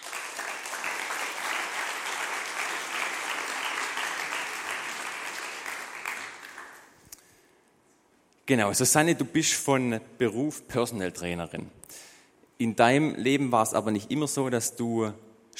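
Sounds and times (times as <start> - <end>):
audience applause: 0.0 - 7.0
speech: 8.5 - 15.5.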